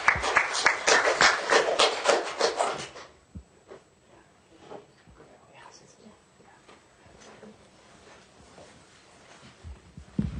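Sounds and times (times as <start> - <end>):
children's council applauding: 0.0 - 3.0.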